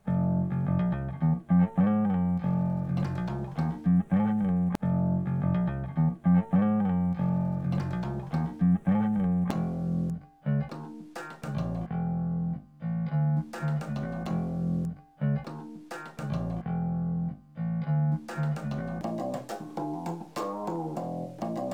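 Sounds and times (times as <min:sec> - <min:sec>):
bass: 0:00.0 - 0:21.7.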